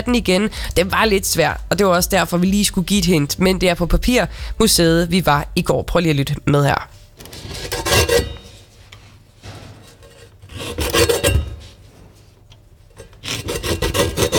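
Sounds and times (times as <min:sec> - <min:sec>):
speech: 0:00.0 - 0:07.8
large rag-cutting knife at Papirmuseet paper mill: 0:07.2 - 0:08.6, 0:10.0 - 0:11.8, 0:13.0 - 0:14.3.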